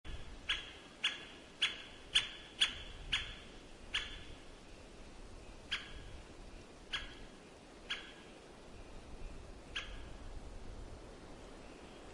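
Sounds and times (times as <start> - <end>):
white-backed woodpecker kik calls: 0.1 - 4.5, 5.5 - 10.2
steady background hiss: 0.1 - 12.1.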